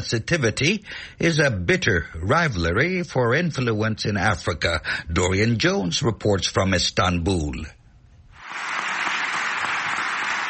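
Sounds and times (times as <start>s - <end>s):
speech: 0.0s - 7.8s
parliamentary deputies applauding: 8.4s - 10.4s.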